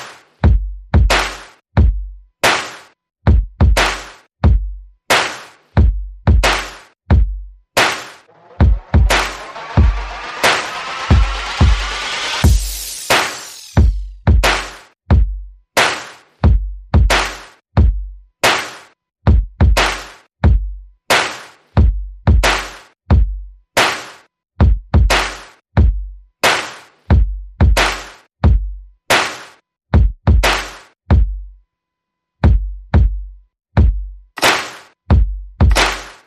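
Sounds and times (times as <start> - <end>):
percussion: 0.0 - 31.4, 32.4 - 36.2
sound effects: 8.3 - 14.1.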